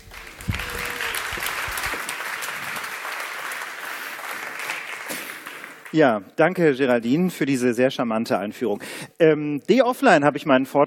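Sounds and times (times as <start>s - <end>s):
audience applause: 0.0s - 6.0s
speech: 5.9s - 10.8s.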